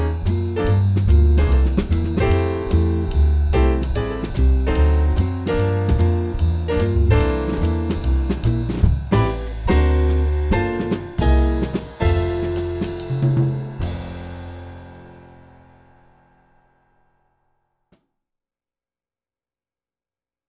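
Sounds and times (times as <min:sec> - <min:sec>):
swing rhythm section playing an etude: 0:00.0 - 0:15.1.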